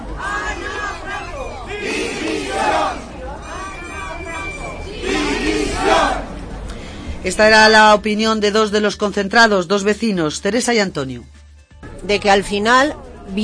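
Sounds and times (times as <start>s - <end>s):
protest crowd shouting outside town hall: 0.0s - 6.4s
speech: 7.2s - 11.4s, 12.0s - 13.4s.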